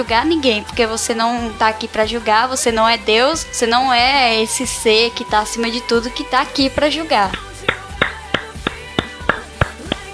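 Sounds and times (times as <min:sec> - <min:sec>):
speech: 0:00.0 - 0:07.5
hand clapping: 0:06.7 - 0:10.1.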